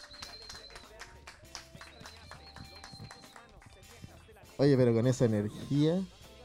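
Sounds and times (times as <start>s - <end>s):
audience applause: 0.0s - 3.8s
speech: 4.6s - 6.2s.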